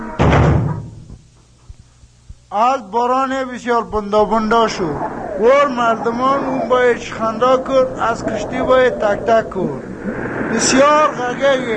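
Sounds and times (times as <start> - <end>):
door slamming shut: 0.0 - 1.2
speech: 2.5 - 9.9, 10.5 - 11.7.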